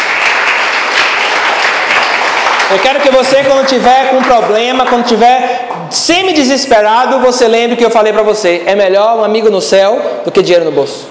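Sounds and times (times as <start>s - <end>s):
congregation applauding in a church: 0.0s - 5.9s
speech: 2.7s - 11.1s.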